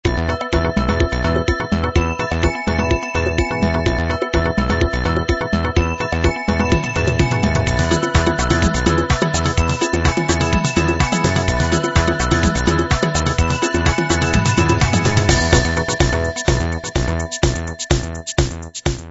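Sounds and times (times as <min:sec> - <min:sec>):
house music: 0:00.0 - 0:19.1.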